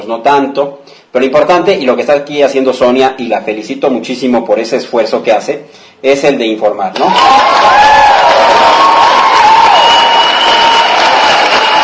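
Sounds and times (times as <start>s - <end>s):
speech: 0.0s - 8.1s
crowd applauding: 7.0s - 11.8s.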